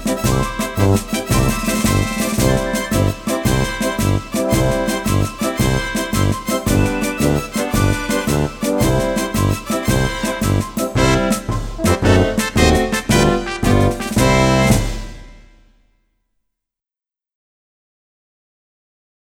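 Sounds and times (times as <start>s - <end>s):
karaoke singing: 0.3s - 14.9s.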